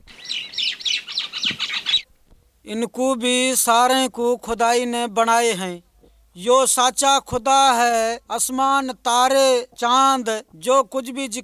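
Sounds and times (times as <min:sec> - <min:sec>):
birds singing: 0:00.0 - 0:02.1
speech: 0:02.6 - 0:11.4.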